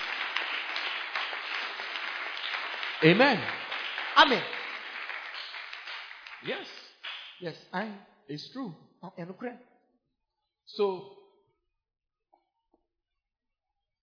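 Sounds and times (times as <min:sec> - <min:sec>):
audience clapping: 0:00.0 - 0:07.6
speech: 0:03.0 - 0:03.6, 0:04.2 - 0:04.6, 0:06.4 - 0:06.8, 0:07.4 - 0:09.7, 0:10.7 - 0:11.2.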